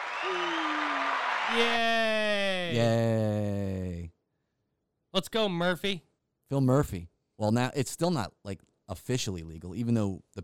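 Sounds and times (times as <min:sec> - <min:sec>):
applause: 0:00.0 - 0:02.1
speech: 0:00.2 - 0:00.6, 0:01.5 - 0:03.6, 0:05.2 - 0:10.4
drawn-out low vocal tone sliding downward: 0:01.6 - 0:04.1.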